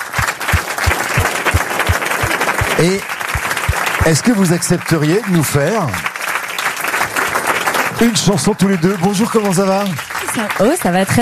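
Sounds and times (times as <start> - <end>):
low thumping pulse: 0.0 - 4.3
audience ovation welcoming a young female singer onto the stage: 0.0 - 11.2
speech: 2.8 - 3.1, 4.0 - 6.1, 8.0 - 11.2.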